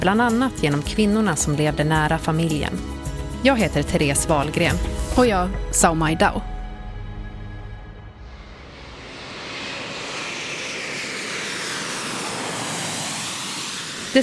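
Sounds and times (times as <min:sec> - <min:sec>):
speech: 0:00.0 - 0:06.5
jet airplane landing at Arlanda airport in Stockholm: 0:06.4 - 0:14.2.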